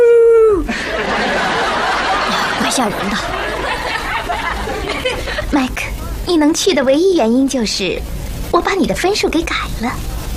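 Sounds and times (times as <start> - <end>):
person imitating a wolf howl: 0.0 - 0.7
laughter: 0.7 - 5.6
speech: 2.8 - 3.4, 5.5 - 10.1.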